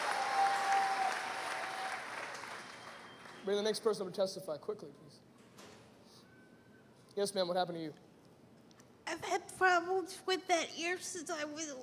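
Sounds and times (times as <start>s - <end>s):
audience applause: 0.0s - 3.4s
speech: 3.4s - 5.4s, 7.2s - 8.0s, 9.1s - 11.8s.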